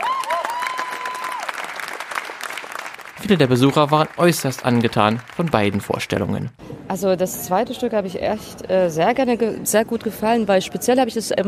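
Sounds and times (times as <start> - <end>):
theatre audience clapping after a lively stage performance: 0.0 - 6.5
speech: 3.2 - 11.4.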